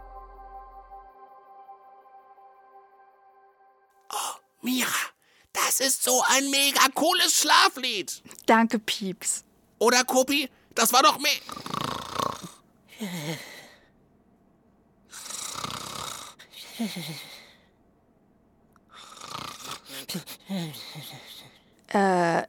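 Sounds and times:
speech: 4.6 - 5.1, 5.7 - 11.8, 13.0 - 13.5, 16.8 - 17.3, 20.1 - 22.4
snoring of a sleeping cat character: 11.4 - 13.7, 15.1 - 17.5, 18.9 - 21.6.

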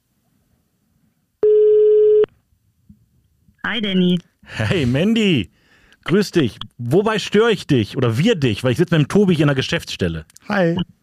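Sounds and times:
ringback tone of an outgoing phone call: 1.4 - 2.3
speech: 3.7 - 11.0.

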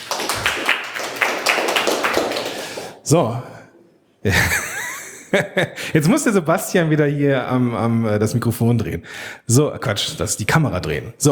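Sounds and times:
audience applauding after a presentation: 0.0 - 3.0
speech: 3.1 - 3.5, 4.2 - 4.6, 5.3 - 11.2
laughter: 4.3 - 5.8.

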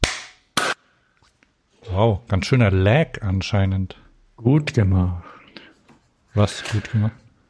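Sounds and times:
hand claps after countdown: 0.0 - 0.8
speech: 1.9 - 5.4, 6.4 - 7.2.

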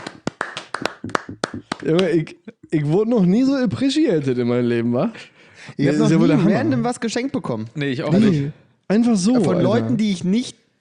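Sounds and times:
hand claps from a couple of people: 0.0 - 2.2
speech: 1.8 - 10.6.

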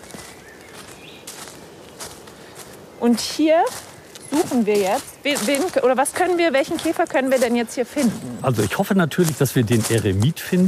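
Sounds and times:
footsteps on forest ground walking into woodland hollow: 0.0 - 10.6
steady hiss: 0.0 - 10.6
speech: 3.0 - 10.6.

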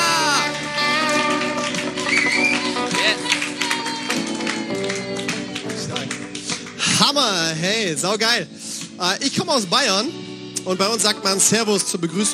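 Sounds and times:
audience applause: 0.0 - 7.2
speech: 7.2 - 12.3.

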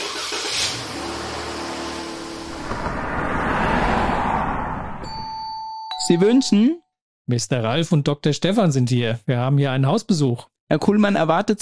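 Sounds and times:
car engine rumbling and revving: 0.0 - 5.0
speech: 6.1 - 11.6.

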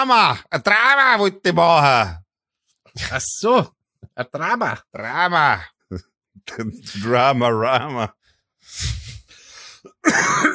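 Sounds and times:
speech: 0.0 - 2.2, 3.0 - 9.0, 10.0 - 10.5
person coughing harshly: 10.0 - 10.5.

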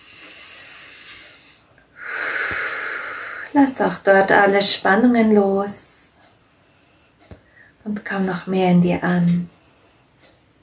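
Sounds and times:
deep breath drawn into the belly during guided relaxation: 0.0 - 3.5, 6.5 - 7.8
speech: 3.5 - 5.8, 7.9 - 9.6.

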